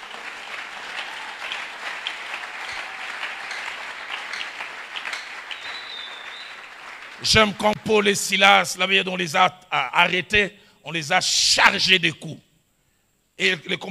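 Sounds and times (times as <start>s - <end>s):
church congregation applause during a sermon in French: 0.0s - 8.2s
speech: 7.2s - 12.5s, 13.4s - 13.8s.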